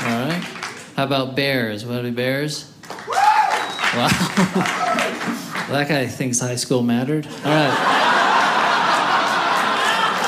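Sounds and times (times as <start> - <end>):
audience clapping: 0.0 - 1.0, 2.8 - 6.1, 8.3 - 10.2
speech: 1.0 - 2.7, 3.9 - 4.9, 5.7 - 8.0
whistle: 3.5 - 4.0
laughter: 4.0 - 5.5, 7.2 - 10.2.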